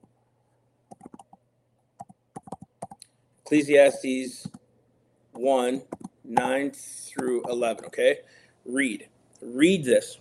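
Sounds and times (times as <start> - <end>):
typing a Bible verse on a computer keyboard: 0.9 - 1.4, 2.0 - 3.1, 5.9 - 6.5
speech: 3.5 - 4.5, 5.4 - 10.1.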